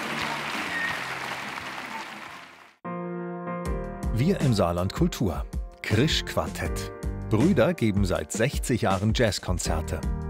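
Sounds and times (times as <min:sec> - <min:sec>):
audience applause: 0:00.0 - 0:02.8
speech: 0:04.2 - 0:10.2.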